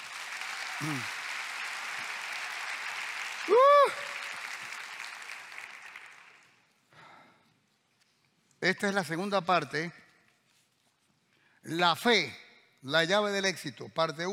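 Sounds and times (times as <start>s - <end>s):
audience applause: 0.0s - 6.6s
speech: 0.8s - 1.1s, 8.7s - 10.0s, 11.6s - 14.3s.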